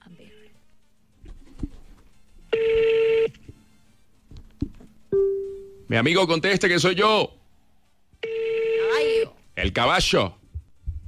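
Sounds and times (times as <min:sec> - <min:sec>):
loud steady telephone tone: 0:02.5 - 0:03.4, 0:08.2 - 0:09.0
speech: 0:05.9 - 0:07.4, 0:09.6 - 0:10.4.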